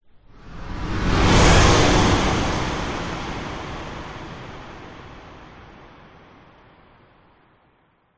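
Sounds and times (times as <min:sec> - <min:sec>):
whoosh: 0:00.1 - 0:06.6.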